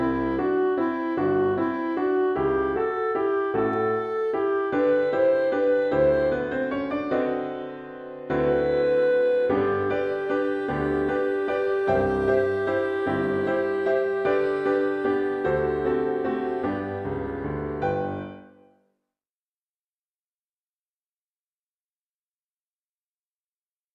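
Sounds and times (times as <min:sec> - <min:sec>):
piano piece: 0:00.0 - 0:18.8.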